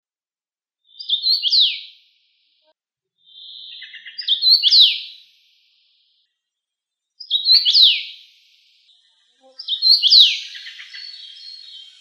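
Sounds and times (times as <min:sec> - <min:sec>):
common rosefinch whistled song: 0:00.9 - 0:02.0, 0:03.2 - 0:05.4, 0:07.2 - 0:11.9.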